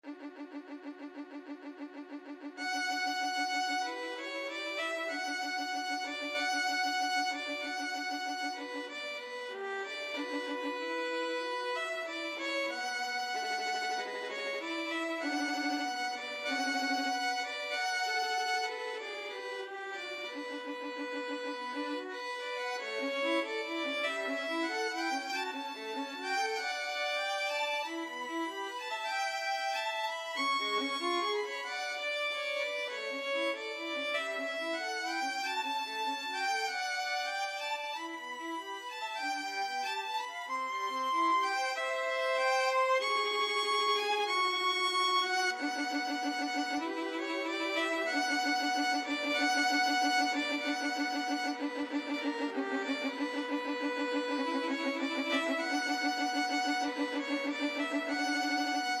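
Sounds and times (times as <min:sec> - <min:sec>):
violin duet scene finale: 0:00.0 - 0:58.9.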